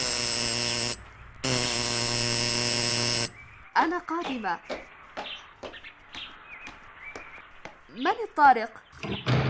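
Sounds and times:
door buzzer ringing: 0:00.0 - 0:03.5
speech: 0:03.8 - 0:04.8, 0:08.0 - 0:09.4.

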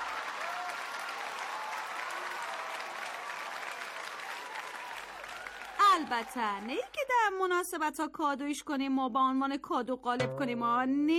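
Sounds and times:
group applause: 0:00.0 - 0:07.1
speech: 0:06.0 - 0:11.1.

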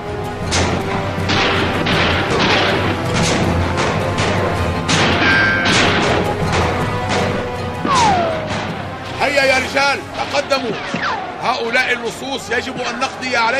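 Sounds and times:
gunshots fired to intimidate: 0:00.4 - 0:12.0
ricochet-like whining tones: 0:00.6 - 0:09.2
speech: 0:09.9 - 0:13.5.

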